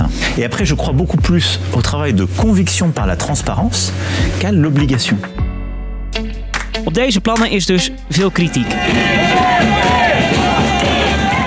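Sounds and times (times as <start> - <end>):
speech: 0.4 - 5.4, 6.2 - 9.7
crowd of street protesters: 8.2 - 11.4.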